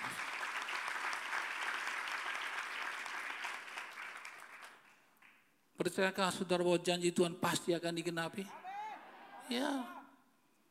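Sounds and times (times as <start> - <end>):
audience applause: 0.0 - 4.9
speech: 5.8 - 8.6, 9.5 - 10.0.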